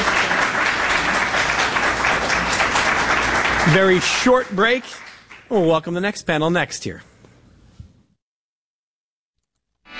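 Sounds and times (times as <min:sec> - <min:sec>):
audience applause for a panel: 0:00.0 - 0:05.7
speech: 0:03.6 - 0:07.1.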